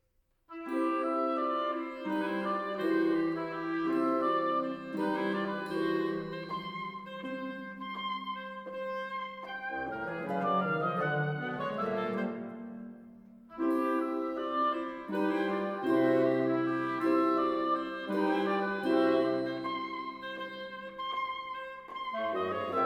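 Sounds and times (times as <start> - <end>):
orchestra playing a pastorale in C: 0.6 - 22.8.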